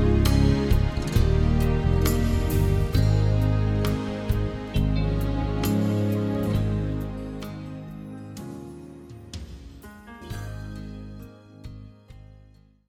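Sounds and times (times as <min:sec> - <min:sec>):
brass music: 0:00.0 - 0:08.4.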